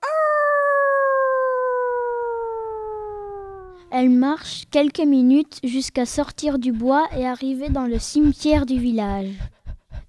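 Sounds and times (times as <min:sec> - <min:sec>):
golden-furred she-wolf howling at the moon: 0:00.0 - 0:03.8
speech: 0:03.9 - 0:09.6.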